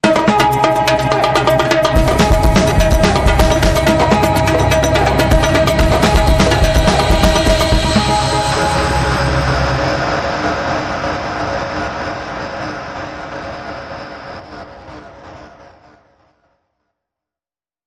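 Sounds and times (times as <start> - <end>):
cuica sting: 0.3 - 11.9.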